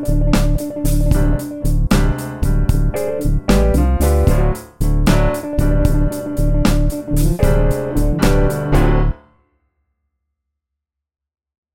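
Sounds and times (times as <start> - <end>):
slow blues music: 0.0 - 9.2.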